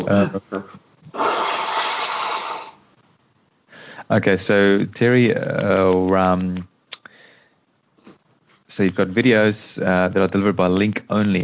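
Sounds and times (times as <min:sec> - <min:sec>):
speech: 0:00.0 - 0:01.3, 0:04.1 - 0:06.7, 0:08.7 - 0:11.4
nose blowing: 0:01.1 - 0:02.8.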